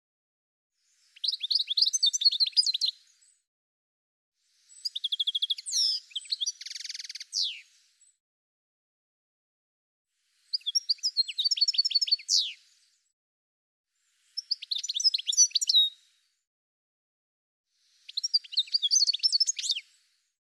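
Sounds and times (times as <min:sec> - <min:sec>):
bird chirping: 0:00.8 - 0:03.4, 0:04.6 - 0:08.1, 0:10.4 - 0:12.9, 0:14.1 - 0:16.0, 0:17.9 - 0:20.0.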